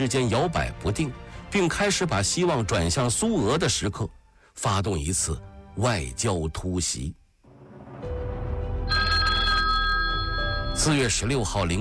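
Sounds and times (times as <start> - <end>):
speech: 0.0 - 7.2, 10.8 - 11.7
old-fashioned telephone bell ringing: 8.9 - 11.3.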